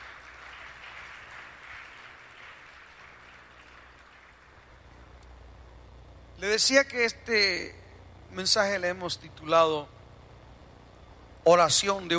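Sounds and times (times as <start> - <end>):
audience applause: 0.0 - 4.8
speech: 6.4 - 7.8, 8.4 - 10.0, 11.4 - 12.1.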